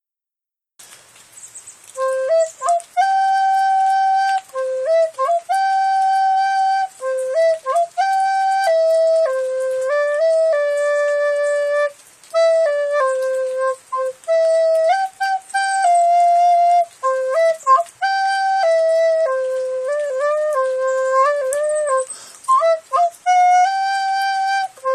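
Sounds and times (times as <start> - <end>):
recorder melody: 2.0 - 24.9.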